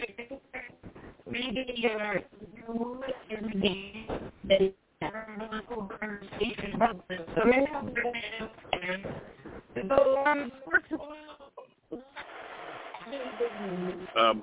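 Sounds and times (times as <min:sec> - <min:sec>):
thin voice over a phone line breaking up: 0:00.0 - 0:11.0
speech: 0:01.3 - 0:04.8, 0:05.4 - 0:10.6, 0:13.6 - 0:14.4.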